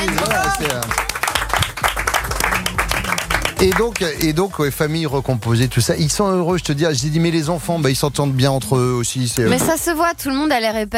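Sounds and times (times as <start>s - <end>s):
hands clapping: 0.0s - 5.9s
speech: 3.6s - 10.9s.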